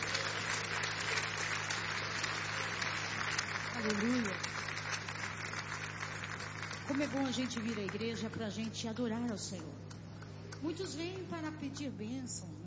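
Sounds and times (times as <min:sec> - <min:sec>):
audience applause: 0:00.0 - 0:08.3
speech: 0:03.8 - 0:04.5, 0:06.9 - 0:09.9, 0:10.6 - 0:12.6.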